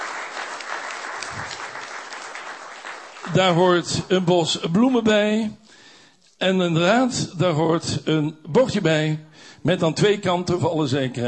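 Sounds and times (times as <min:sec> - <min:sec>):
applause for a council member's installation: 0:00.0 - 0:04.1
speech: 0:03.3 - 0:05.6, 0:06.4 - 0:11.2.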